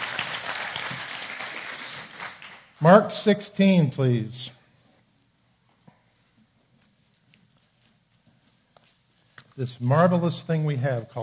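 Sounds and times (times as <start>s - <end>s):
audience clapping: 0.0s - 3.2s
speech: 2.8s - 4.6s, 9.6s - 11.2s.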